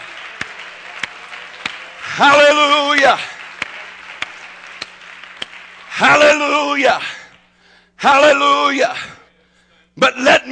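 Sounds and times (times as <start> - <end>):
audience clapping in praise: 0.0 - 7.4
speech: 2.2 - 3.3, 6.0 - 7.2, 8.0 - 9.1, 10.0 - 10.5.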